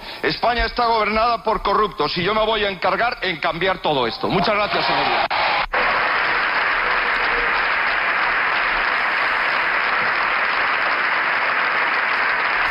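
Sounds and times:
speech: 0:00.2 - 0:05.4
parliamentary benches applauding a speech: 0:04.3 - 0:12.6.

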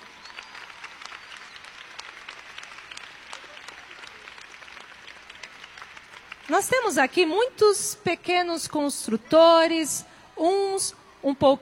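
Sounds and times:
audience clapping: 0:00.0 - 0:07.3
speech: 0:06.5 - 0:11.6.

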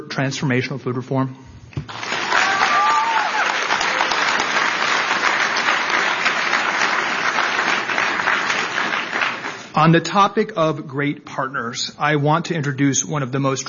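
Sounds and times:
speech: 0:00.2 - 0:02.0, 0:09.8 - 0:13.6
applause from a large audience: 0:01.9 - 0:09.7.

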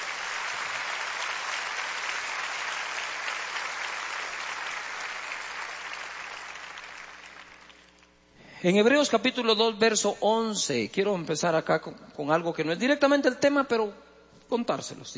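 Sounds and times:
audience applause: 0:00.0 - 0:07.9
speech: 0:08.6 - 0:15.1.

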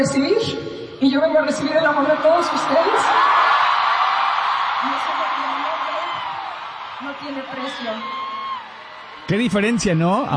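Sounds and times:
speech: 0:00.0 - 0:03.5, 0:07.0 - 0:08.2, 0:09.3 - 0:10.3
audience cheering and shouting: 0:01.6 - 0:10.3
individual yells and whoops: 0:02.3 - 0:09.3.

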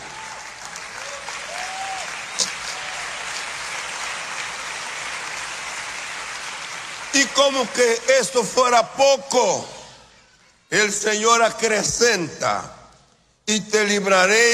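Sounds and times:
audience applause: 0:00.0 - 0:07.9
speech: 0:07.1 - 0:09.8, 0:10.7 - 0:12.8, 0:13.5 - 0:14.5.

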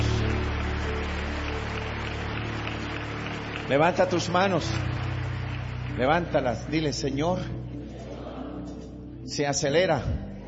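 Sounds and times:
audience applauding: 0:00.0 - 0:07.5
speech: 0:03.7 - 0:05.0, 0:06.0 - 0:07.6, 0:09.3 - 0:10.2.

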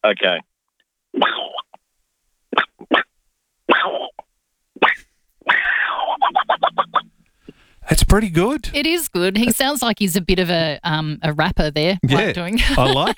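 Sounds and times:
speech: 0:00.0 - 0:00.5, 0:01.1 - 0:01.6, 0:07.9 - 0:13.1
person imitating Donald Duck sneezing: 0:01.2 - 0:01.7, 0:02.5 - 0:03.1, 0:03.7 - 0:04.2, 0:04.8 - 0:07.0
laughter: 0:12.0 - 0:13.1.

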